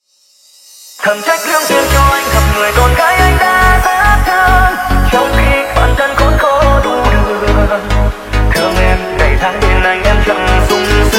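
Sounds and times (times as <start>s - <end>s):
remix music: 1.0s - 11.1s.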